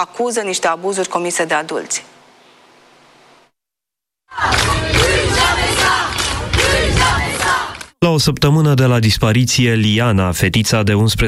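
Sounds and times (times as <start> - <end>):
speech: 0.0 - 2.2, 8.0 - 11.2
large crowd of protesters shouting: 4.3 - 7.9.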